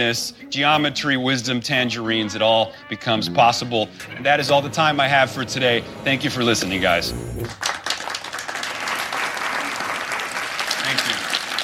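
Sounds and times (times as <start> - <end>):
speech: 0.0 - 7.8
dozens of people standing and applauding after a speech: 7.4 - 11.6.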